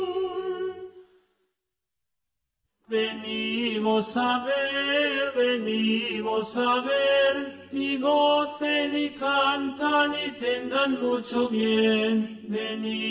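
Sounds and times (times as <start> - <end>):
tenor singing: 2.9 - 13.1.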